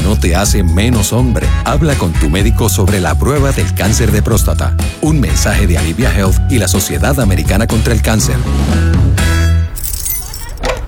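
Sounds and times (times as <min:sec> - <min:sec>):
speech: 0:00.2 - 0:09.3
house keys jingling: 0:09.7 - 0:10.7.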